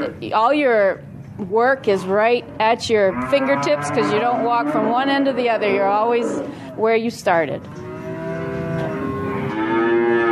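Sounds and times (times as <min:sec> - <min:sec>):
speech: 0:00.0 - 0:07.9
calves mooing inside a round barn in Vermont: 0:02.9 - 0:07.0, 0:07.6 - 0:10.3.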